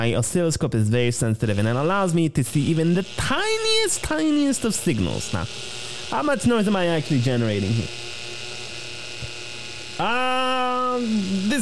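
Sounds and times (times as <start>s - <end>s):
speech: 0.0s - 8.1s, 10.0s - 11.5s
electric drill running: 1.4s - 11.5s.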